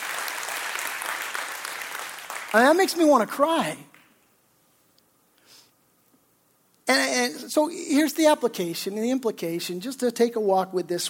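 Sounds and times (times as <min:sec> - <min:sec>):
audience clapping: 0:00.0 - 0:04.2
speech: 0:02.5 - 0:03.9, 0:06.9 - 0:11.0.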